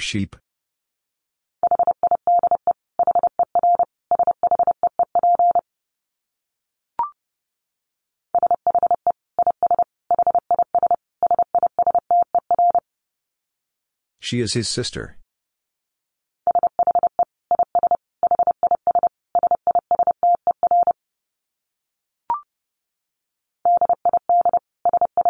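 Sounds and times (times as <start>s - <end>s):
speech: 0.0s - 0.4s, 14.2s - 15.2s
Morse code tones at 30 wpm: 1.6s - 5.6s, 8.4s - 12.8s, 16.5s - 21.0s, 23.7s - 25.2s.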